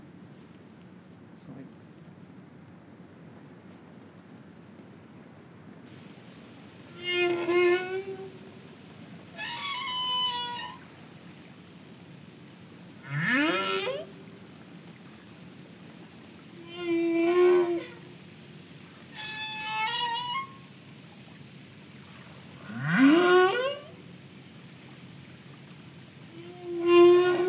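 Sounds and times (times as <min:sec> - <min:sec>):
humpback whale singing: 0:06.9 - 0:27.4.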